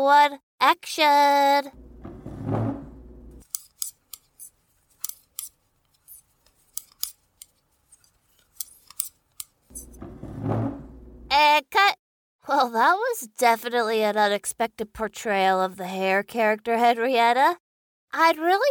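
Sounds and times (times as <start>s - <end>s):
speech: 0.0s - 1.9s, 11.4s - 18.6s
knitting needles clicking: 3.4s - 9.9s.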